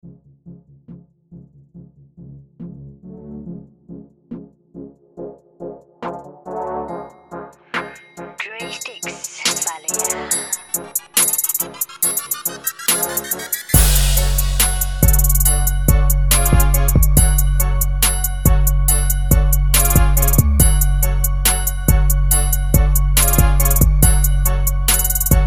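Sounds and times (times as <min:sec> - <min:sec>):
instrumental music: 0:05.9 - 0:25.4.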